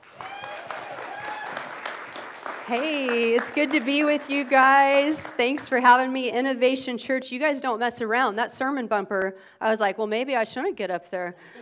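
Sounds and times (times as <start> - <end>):
audience applause welcoming a guest speaker at a church service: 0.0 - 5.8
speech: 2.7 - 11.6.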